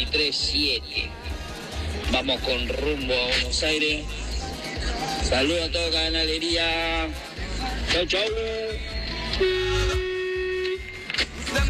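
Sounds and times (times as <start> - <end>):
speech: 0.0 - 10.0
low rumbling engine and road noise: 0.0 - 11.6
truck horn blast: 9.3 - 11.1.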